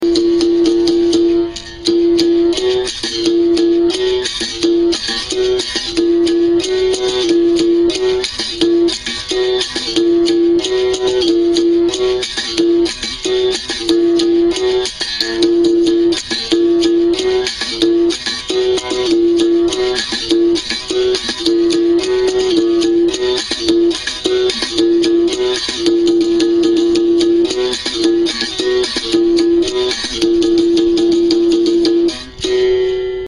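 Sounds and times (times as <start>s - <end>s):
São Bento Regional capoeira rhythm: 0.0s - 33.2s.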